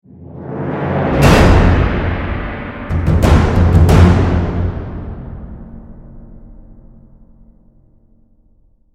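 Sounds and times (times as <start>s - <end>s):
battle end music: 0.8s - 7.7s.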